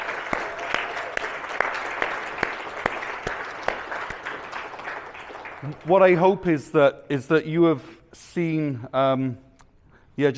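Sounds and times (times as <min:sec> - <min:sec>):
round of applause: 0:00.0 - 0:06.4
speech: 0:05.6 - 0:09.5, 0:10.2 - 0:10.3.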